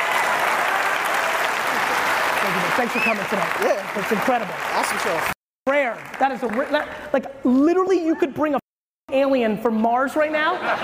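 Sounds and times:
audience applause: 0.0 - 6.9
speech: 2.4 - 10.8.

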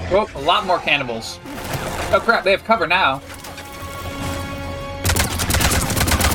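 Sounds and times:
speech: 0.1 - 1.6, 2.1 - 3.3
video game gun firing rapidly: 5.0 - 6.3.

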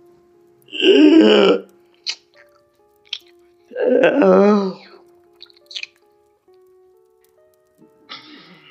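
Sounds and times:
person vomiting: 0.7 - 1.7, 3.7 - 4.8.

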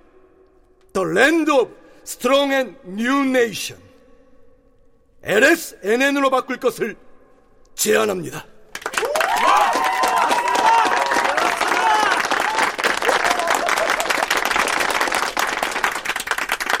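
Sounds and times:
speech: 1.0 - 3.9, 5.2 - 7.0, 7.8 - 8.5
crowd applauding: 8.7 - 16.7
crowd cheering and whooping: 9.0 - 14.6.

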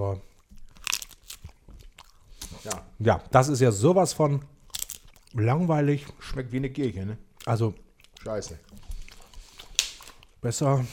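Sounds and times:
biting and crunching thin edible rice paper: 0.4 - 2.8, 4.6 - 5.4, 7.4 - 10.4
speech: 2.6 - 4.6, 5.3 - 8.9, 10.4 - 10.9.

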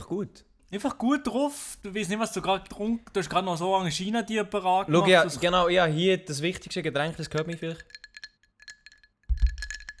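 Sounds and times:
speech: 0.1 - 8.0
ice cubes rattling in a drink glass: 7.8 - 9.9
glass thump as the glass is moved: 9.3 - 9.9.

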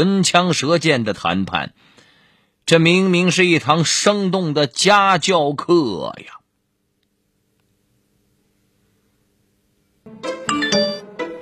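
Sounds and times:
speech: 0.0 - 2.0, 2.7 - 6.4
text message notification chime: 10.5 - 11.1.

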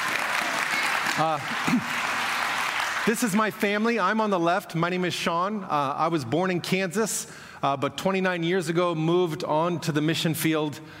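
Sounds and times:
audience applause: 0.0 - 4.1
speech: 1.2 - 2.1, 3.1 - 10.9.

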